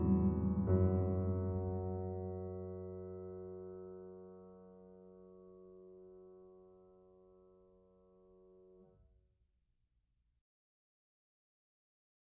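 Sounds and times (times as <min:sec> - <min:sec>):
piano piece: 0:00.0 - 0:08.8.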